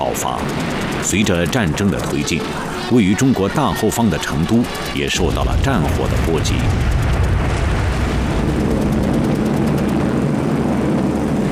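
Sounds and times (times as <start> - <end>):
roar of many aircraft engines overhead: 0.0 - 11.5
speech: 0.2 - 7.0.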